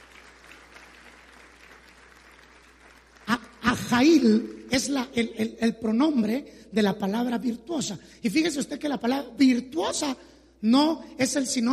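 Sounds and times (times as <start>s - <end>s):
audience applauding: 0.0s - 4.4s
speech: 3.9s - 11.7s.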